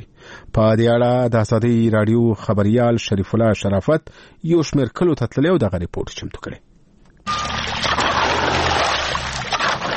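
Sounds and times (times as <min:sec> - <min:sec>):
speech: 0:00.5 - 0:06.7
irrigation water rushing into a field near Tarinkot: 0:07.3 - 0:09.9.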